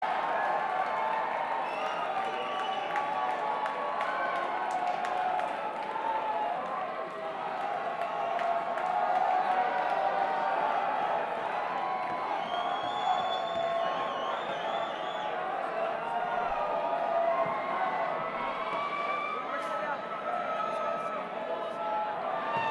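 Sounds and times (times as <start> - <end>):
crowd banter: 0.0 - 22.7.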